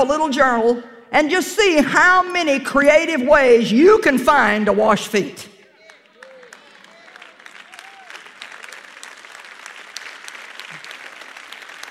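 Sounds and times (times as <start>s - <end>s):
speech: 0.0s - 5.5s
crowd, audience clapping: 5.6s - 11.8s.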